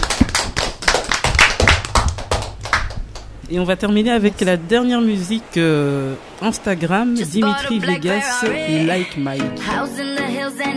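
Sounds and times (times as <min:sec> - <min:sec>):
audience applauding: 0:00.0 - 0:03.3
speech: 0:03.5 - 0:10.7.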